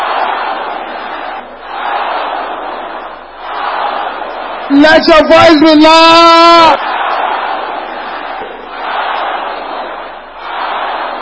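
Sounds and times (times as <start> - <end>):
large crowd shouting in unison: 0.0 - 11.2
speech: 4.7 - 6.8.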